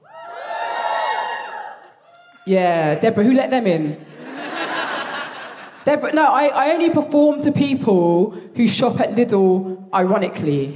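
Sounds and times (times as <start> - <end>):
audience cheering: 0.0 - 2.5
speech: 2.4 - 4.1, 5.8 - 10.7
laughter: 4.1 - 5.8.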